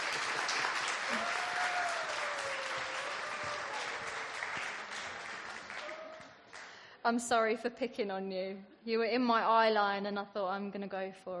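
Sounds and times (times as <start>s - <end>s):
audience applause: 0.0s - 6.8s
speech: 7.1s - 11.3s.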